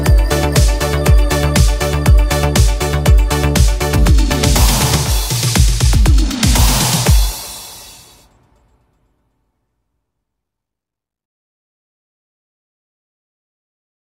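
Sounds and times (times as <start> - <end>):
italo disco instrumental cover: 0.0 - 8.2.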